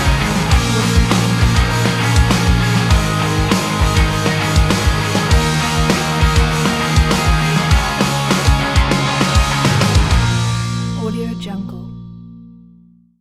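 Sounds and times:
exciting indie rock music: 0:00.0 - 0:11.0.

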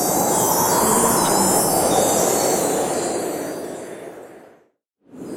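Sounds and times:
Christmas transition sounds: 0:00.0 - 0:03.7.

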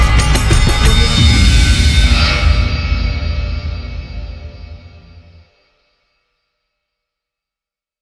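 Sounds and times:
creepy horror music: 0:00.0 - 0:05.5.

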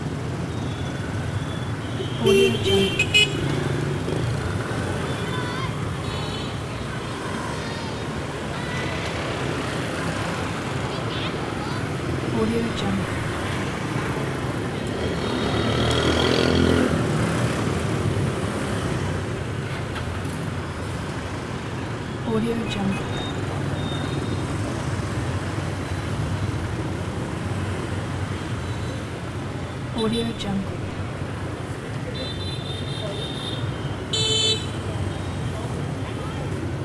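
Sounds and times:
busy traffic in Saigon: 0:00.0 - 0:36.8.

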